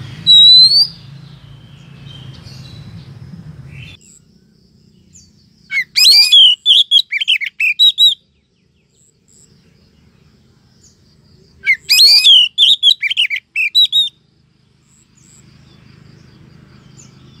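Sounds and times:
Oriental magpie-robin rising whistle: 0.0 - 1.1, 5.7 - 8.2, 11.6 - 14.2.

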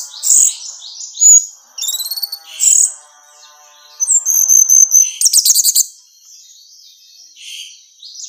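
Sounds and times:
orange-headed thrush song: 0.0 - 6.0.

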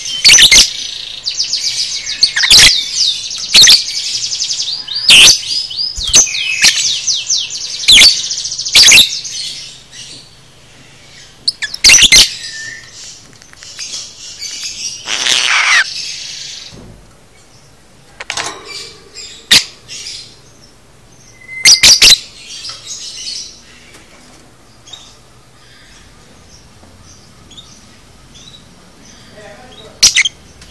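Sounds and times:
lovebird piercing shrieks: 0.0 - 0.9, 2.0 - 4.2, 4.8 - 7.1, 7.9 - 9.2, 11.5 - 12.9, 14.9 - 16.7, 18.7 - 20.3, 21.3 - 22.4
lovebird twittering and squeaking: 0.0 - 16.8, 18.2 - 24.0, 24.8 - 30.6.

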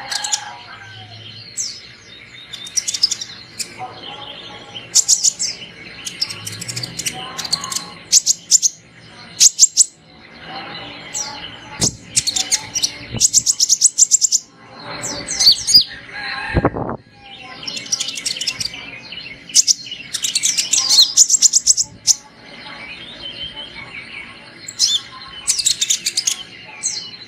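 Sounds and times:
sunbird calls: 0.0 - 16.0, 17.2 - 27.2.

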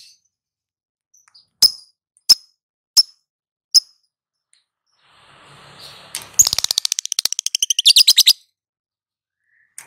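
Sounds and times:
lovebird long chattering calls: 6.4 - 8.3.

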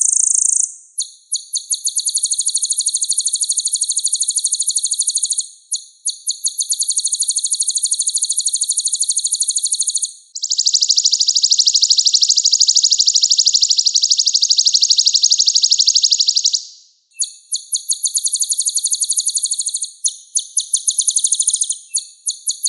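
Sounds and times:
olive-backed sunbird song: 0.0 - 22.6.

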